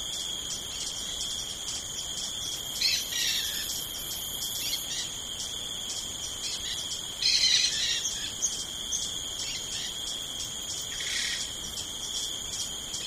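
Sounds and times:
Amazon jungle ambience: 0.0 - 13.0.

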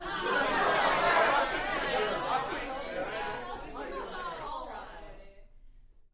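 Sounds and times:
laughter: 0.0 - 5.1
rowdy indoor crowd: 0.0 - 5.4.

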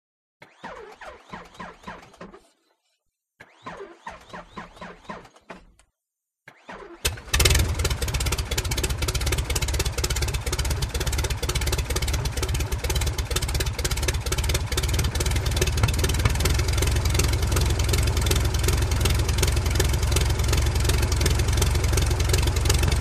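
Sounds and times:
Tiger Moth prop plane engine starting, revving and shutting off: 7.1 - 22.9.

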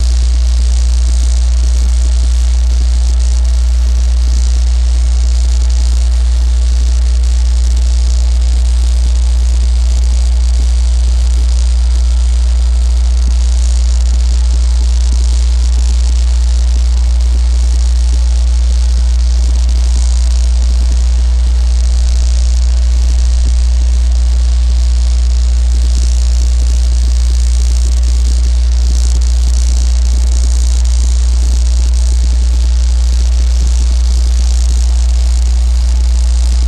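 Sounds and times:
dam power plant buzz and hums: 0.0 - 36.6.

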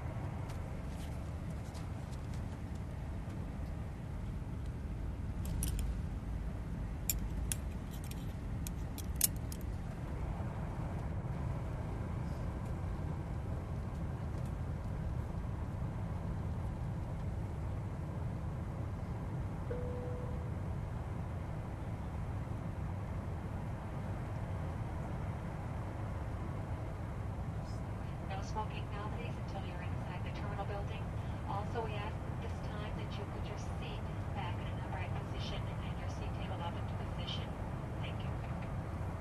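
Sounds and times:
747 jet interior during descent: 0.0 - 39.1.

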